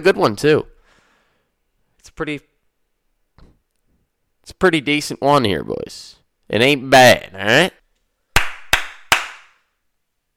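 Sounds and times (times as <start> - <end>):
speech: 0.0 - 0.7, 2.2 - 2.5, 4.5 - 7.8
hand clapping: 8.4 - 9.6.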